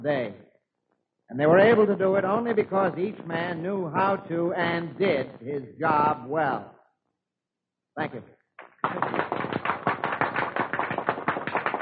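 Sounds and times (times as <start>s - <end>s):
speech: 0.0s - 0.4s, 1.3s - 6.8s, 8.0s - 9.2s
crowd applauding: 8.6s - 11.8s.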